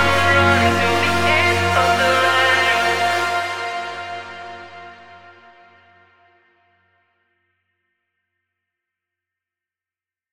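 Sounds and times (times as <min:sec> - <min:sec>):
construction kit full music mix: 0:00.0 - 0:06.3.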